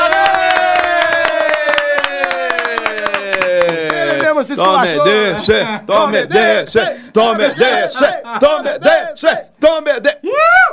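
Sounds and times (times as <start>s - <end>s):
audience applause: 0.0s - 4.9s
speech: 4.5s - 10.6s.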